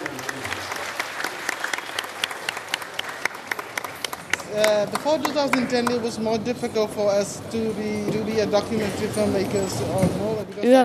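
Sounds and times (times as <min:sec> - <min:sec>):
standing ovation applause in a cinema: 0:00.0 - 0:06.2
speech: 0:04.6 - 0:10.8.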